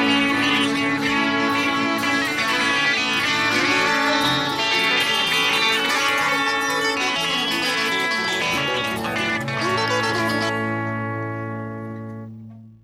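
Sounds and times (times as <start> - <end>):
keyboard song stem: 0.0 - 12.6
guitar song stem: 0.0 - 12.8.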